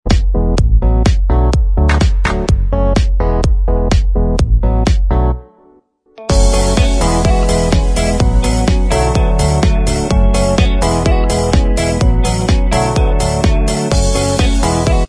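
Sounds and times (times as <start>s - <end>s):
instrumental backing track: 0.0s - 15.0s.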